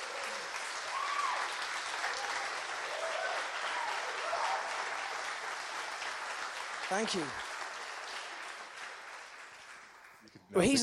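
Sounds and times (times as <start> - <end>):
audience applause: 0.0 - 10.8
speech: 6.9 - 7.5, 10.5 - 10.8.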